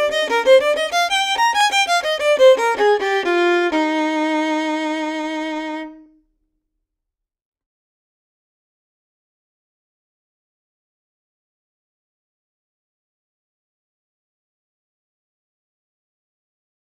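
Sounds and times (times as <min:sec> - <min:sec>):
violin etude: 0:00.0 - 0:06.2.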